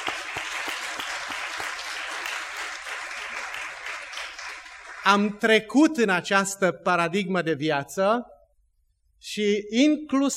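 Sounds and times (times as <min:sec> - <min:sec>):
applause: 0:00.0 - 0:05.5
speech: 0:05.0 - 0:08.3, 0:09.2 - 0:10.3.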